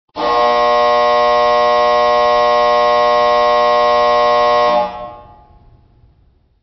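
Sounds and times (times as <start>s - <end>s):
buzzer: 0.2s - 5.4s.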